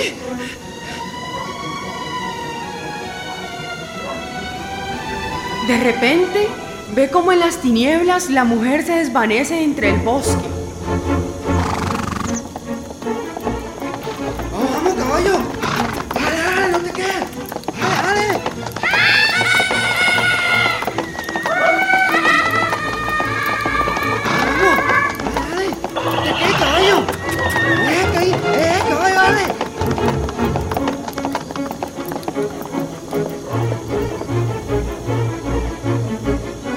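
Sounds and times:
horse hooves clopping: 0:00.0 - 0:36.7
speech: 0:05.7 - 0:11.3
horse whinnying: 0:11.4 - 0:34.5.

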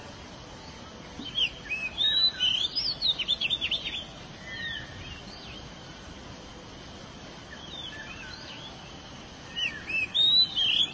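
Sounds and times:
background hiss: 0:00.0 - 0:10.9
canary singing: 0:01.2 - 0:05.6, 0:07.5 - 0:10.9.

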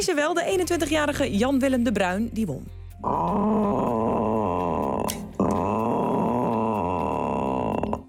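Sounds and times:
speech: 0:00.0 - 0:03.8
man imitating a rutting red deer's roar: 0:03.0 - 0:08.0.

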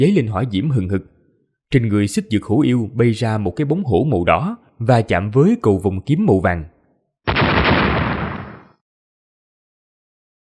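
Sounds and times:
speech: 0:00.0 - 0:06.7
rapid series of explosions: 0:07.3 - 0:08.8.

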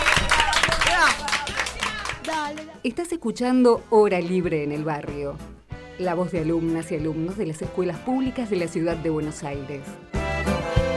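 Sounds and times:
students applauding on a school radio program: 0:00.0 - 0:02.8
speech: 0:02.5 - 0:10.2.

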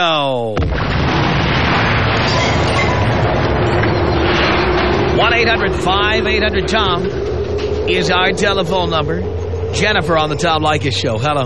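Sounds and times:
speech: 0:00.0 - 0:00.6, 0:05.4 - 0:11.4
explosion sound effect with dense roaring low rumble: 0:00.6 - 0:11.4
brief wavering rising tone: 0:02.4 - 0:11.4.

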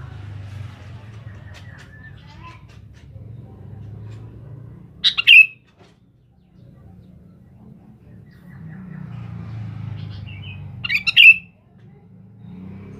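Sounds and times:
sooty-headed bulbul calling: 0:05.0 - 0:05.7, 0:10.0 - 0:11.6.

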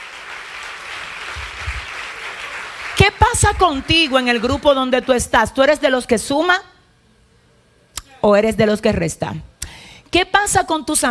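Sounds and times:
church congregation clapping during a service: 0:00.0 - 0:05.4
speech: 0:03.3 - 0:06.7, 0:08.2 - 0:09.5, 0:10.1 - 0:11.0.

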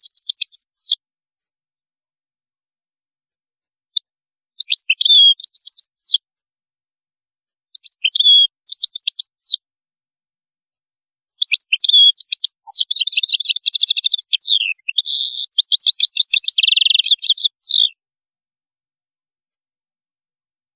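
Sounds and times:
European goldfinch song: 0:00.0 - 0:01.0, 0:04.0 - 0:06.2, 0:07.7 - 0:09.6, 0:11.3 - 0:18.0.

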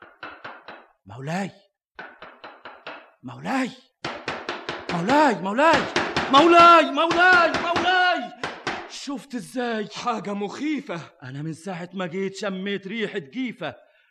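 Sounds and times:
knocking on a door: 0:00.0 - 0:01.0, 0:02.0 - 0:03.2, 0:04.0 - 0:09.0
speech: 0:01.1 - 0:01.6, 0:03.2 - 0:03.9, 0:04.9 - 0:08.0, 0:09.0 - 0:13.8.

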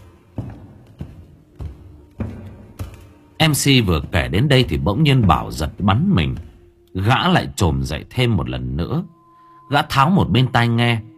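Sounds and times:
footsteps thumping on a floor: 0:00.0 - 0:06.7
speech: 0:03.4 - 0:11.1.

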